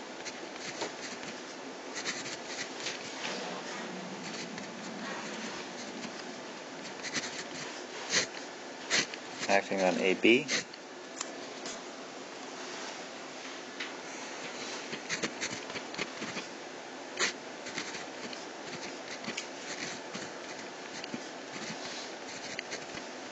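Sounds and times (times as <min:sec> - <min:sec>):
constant low hiss: 0:00.0 - 0:23.3
writing out equation terms: 0:00.2 - 0:10.7, 0:14.4 - 0:16.5, 0:17.2 - 0:23.3
speech: 0:09.5 - 0:10.6.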